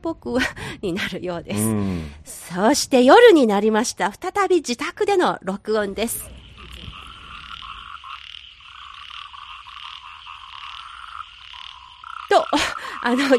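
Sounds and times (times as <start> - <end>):
speech: 0.0 - 6.4, 12.4 - 13.3
frogs croaking at night: 6.0 - 13.3.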